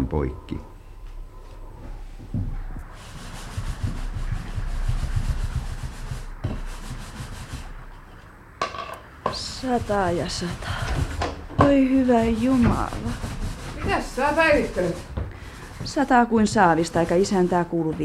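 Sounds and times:
speech: 0.1s - 0.7s, 9.6s - 10.7s, 11.6s - 15.1s, 15.9s - 18.0s
scrubbing wooden milk vessels: 2.7s - 8.2s, 9.3s - 18.0s.

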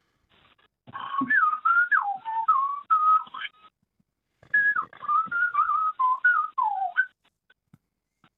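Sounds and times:
person whistling an imitation of a night-singing bird's song: 1.2s - 3.4s, 4.5s - 7.2s.

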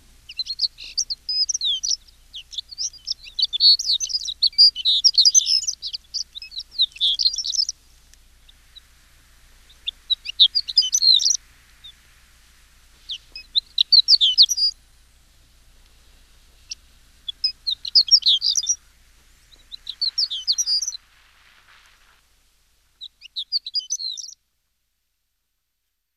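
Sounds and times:
horned lark singing: 0.3s - 9.0s, 9.6s - 12.0s, 13.0s - 14.8s, 16.5s - 21.1s, 23.0s - 24.4s.

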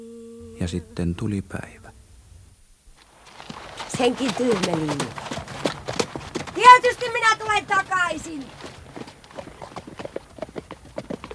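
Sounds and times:
speech: 0.6s - 1.8s, 4.0s - 5.3s, 6.6s - 8.8s
horse hoofbeats as a horse is ridden off: 3.0s - 11.3s.

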